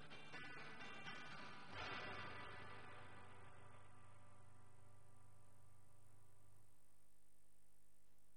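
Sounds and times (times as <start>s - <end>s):
clean electric guitar through Marshall 6101 amplifier channel 1: 0.0s - 6.7s.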